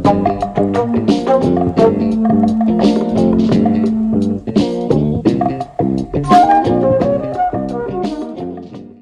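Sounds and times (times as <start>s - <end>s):
fluting: 0.1s - 4.8s, 6.2s - 8.5s.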